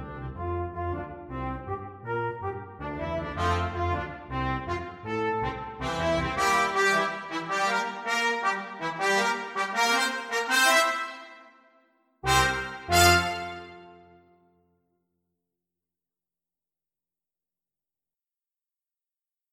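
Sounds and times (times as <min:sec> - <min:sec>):
brass quintet playing salsa: 0:00.0 - 0:14.2.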